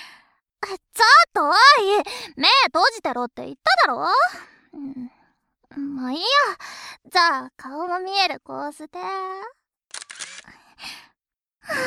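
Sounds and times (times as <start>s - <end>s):
speech: 1.4s - 9.6s, 11.7s - 11.8s
camera shutter clicks taking a photo: 9.9s - 10.5s.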